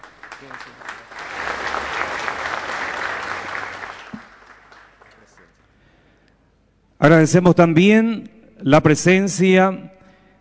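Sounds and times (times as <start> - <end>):
loud applause: 0.0 - 5.6
speech: 0.4 - 1.3, 7.0 - 9.9.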